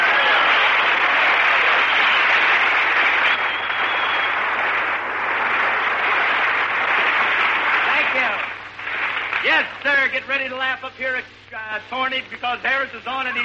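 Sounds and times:
audience applause: 0.0 - 9.8
speech: 10.2 - 13.4.

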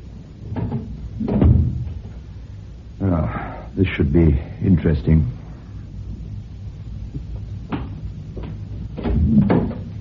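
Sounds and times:
bathroom door being closed: 0.5 - 2.0, 9.0 - 9.9
speech: 3.2 - 5.4.

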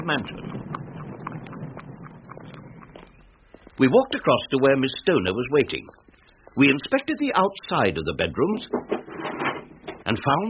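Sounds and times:
speech: 0.0 - 0.5, 3.8 - 6.0, 6.6 - 9.0, 10.1 - 10.4
hooves of a horse pulling a hired trap across a park: 0.0 - 6.2.

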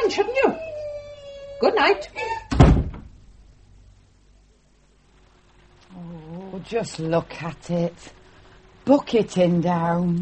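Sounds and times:
speech: 0.1 - 0.7, 1.6 - 2.4, 6.6 - 8.2, 8.8 - 10.2
door shutting with a heavy low thud: 2.5 - 3.2.

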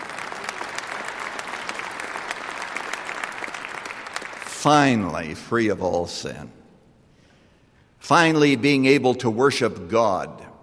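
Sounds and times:
audience applause: 0.0 - 4.5
speech: 4.6 - 6.6, 8.1 - 10.5.

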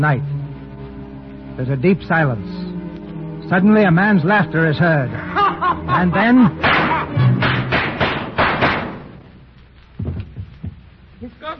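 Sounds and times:
speech: 0.0 - 0.3, 1.6 - 2.7, 3.5 - 7.2
laughter: 5.2 - 7.2
gunshot sound effects in a radio drama: 6.6 - 9.2.

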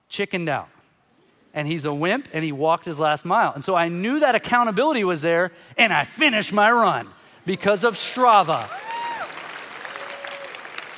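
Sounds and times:
speech: 0.1 - 0.8, 1.5 - 8.9
audience applause: 8.6 - 10.9.

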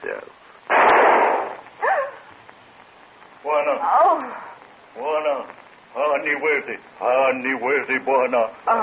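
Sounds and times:
speech: 0.0 - 0.5, 3.4 - 8.8
gunshot: 0.7 - 1.7.

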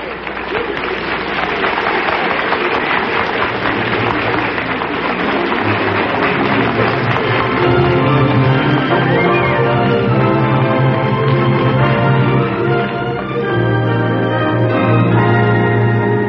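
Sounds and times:
theater audience applauding actors' bows at a premiere at the Little Theater off Times Square: 0.0 - 16.2.

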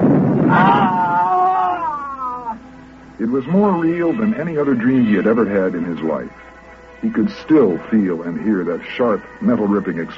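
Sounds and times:
man screaming as he wakes: 0.5 - 2.6
speech: 3.2 - 10.1.

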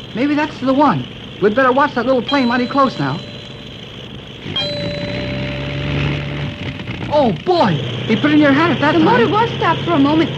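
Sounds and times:
speech: 0.2 - 3.3, 4.5 - 5.0, 7.1 - 10.3
single musical note struck repeatedly: 2.3 - 7.1.

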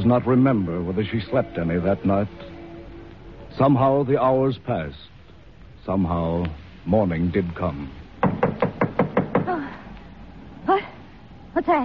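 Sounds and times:
speech: 0.0 - 2.6, 3.6 - 5.1, 5.8 - 8.0, 10.6 - 10.9, 11.6 - 11.8
knocking on the front door: 8.2 - 9.6.

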